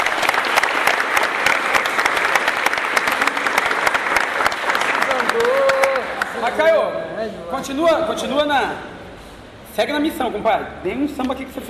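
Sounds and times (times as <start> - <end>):
applause: 0.0 - 6.5
speech: 6.6 - 8.9, 9.8 - 11.6.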